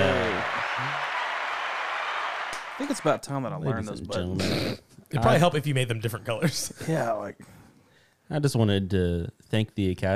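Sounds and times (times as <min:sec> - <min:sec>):
canned applause sound effect: 0:00.0 - 0:03.3
speech: 0:02.8 - 0:07.6, 0:08.3 - 0:10.1.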